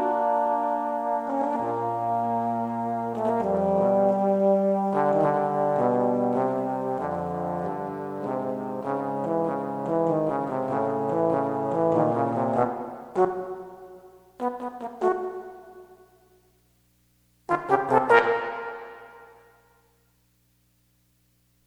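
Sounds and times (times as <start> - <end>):
two trombones playing: 0.0 - 13.7, 14.4 - 15.8, 17.5 - 19.4.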